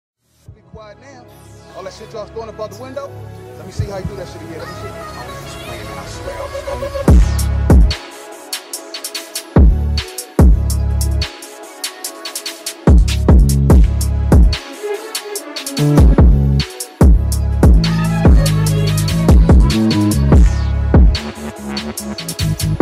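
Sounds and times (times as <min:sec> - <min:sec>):
UK drill music beat: 0:06.4 - 0:22.7.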